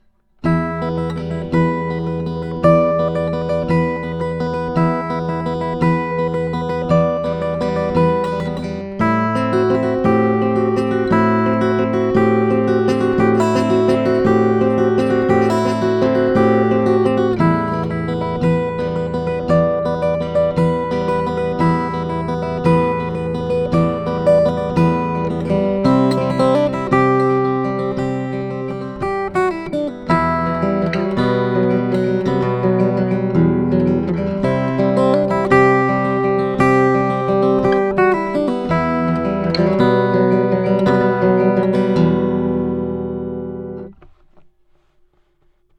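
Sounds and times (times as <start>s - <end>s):
Gibson guitar: 0.0s - 44.0s.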